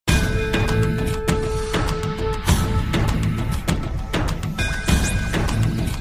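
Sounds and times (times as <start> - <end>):
cricket ringtone: 0.1 - 5.9.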